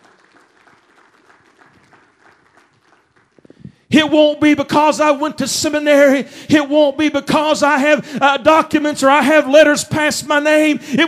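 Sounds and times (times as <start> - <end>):
audience clapping: 0.0 - 3.8
speech: 3.9 - 11.0.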